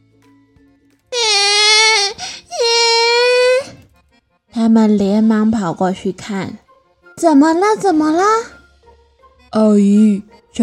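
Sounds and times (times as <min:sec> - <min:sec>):
child crying in a park: 0:01.2 - 0:03.8
speech: 0:04.6 - 0:06.6, 0:07.2 - 0:08.6, 0:09.5 - 0:10.6.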